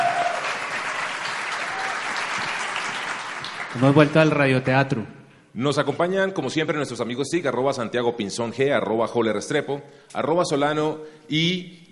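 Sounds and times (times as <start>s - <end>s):
audience applause: 0.0s - 4.4s
speech: 3.8s - 11.9s.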